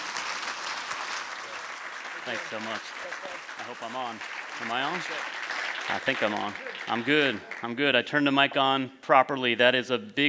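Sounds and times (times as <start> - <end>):
audience clapping: 0.0 - 7.8
speech: 2.3 - 10.2.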